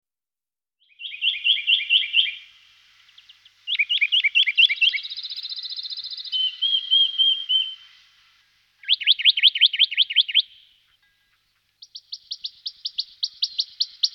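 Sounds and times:
western rock nuthatch singing fast trill: 0:00.8 - 0:02.4, 0:03.2 - 0:07.9, 0:08.8 - 0:10.8, 0:11.8 - 0:14.1.

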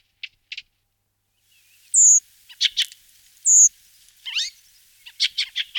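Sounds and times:
Turdus iliacus redwing singing: 0:01.5 - 0:05.7.

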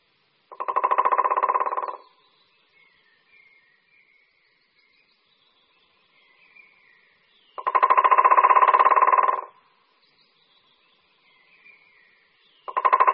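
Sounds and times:
white-backed woodpecker drumming: 0:00.5 - 0:02.1, 0:07.6 - 0:09.6, 0:12.6 - 0:13.1
faint high bird calls: 0:00.5 - 0:09.6, 0:10.2 - 0:13.1.

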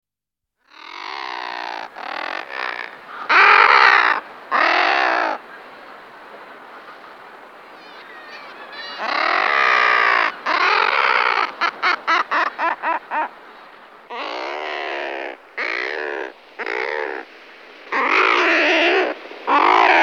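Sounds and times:
thick-billed murre growling call: 0:00.7 - 0:05.4, 0:08.8 - 0:13.4, 0:14.1 - 0:17.3, 0:17.9 - 0:20.0.

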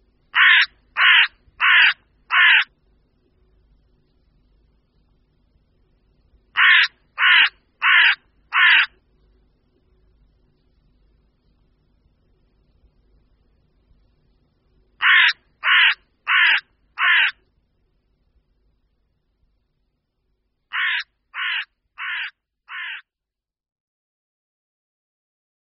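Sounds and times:
carrion crow cawing: 0:00.4 - 0:02.7, 0:06.6 - 0:08.9, 0:15.0 - 0:17.4, 0:20.7 - 0:23.0.

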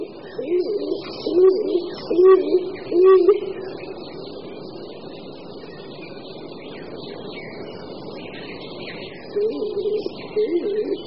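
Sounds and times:
stock dove cooing: 0:00.0 - 0:03.8, 0:09.3 - 0:11.0.

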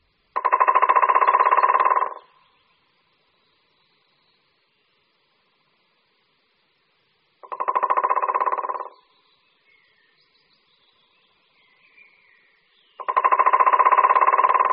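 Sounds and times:
White-backed woodpecker drumming: 0:00.4 - 0:02.3, 0:07.4 - 0:09.0, 0:13.0 - 0:14.7.

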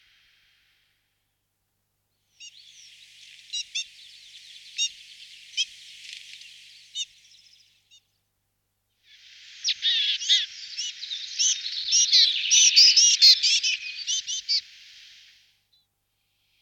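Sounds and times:
willow tit calling: 0:02.4 - 0:08.0, 0:09.4 - 0:14.7.

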